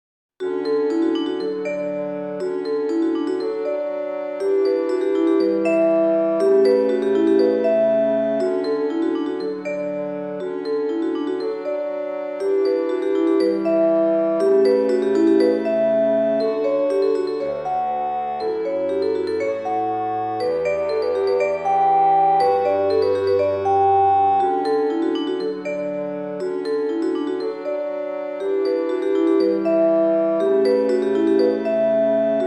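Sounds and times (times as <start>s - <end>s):
mallet percussion: 0.4s - 32.4s
happy wind trio playing: 5.7s - 6.8s, 13.7s - 15.0s, 17.5s - 24.7s, 29.7s - 30.8s.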